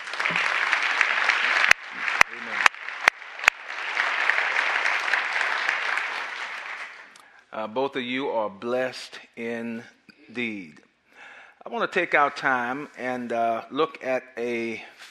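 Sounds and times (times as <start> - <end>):
audience applauding: 0.0 - 7.2
speech: 7.6 - 10.8, 11.6 - 15.1.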